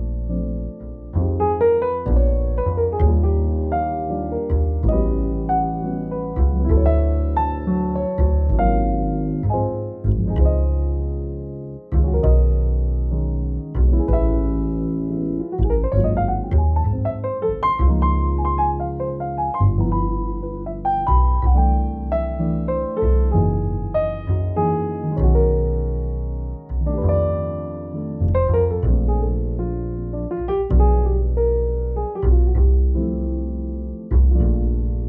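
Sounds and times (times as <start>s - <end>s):
cozy relaxing jazz cafe background music: 0.0s - 35.0s.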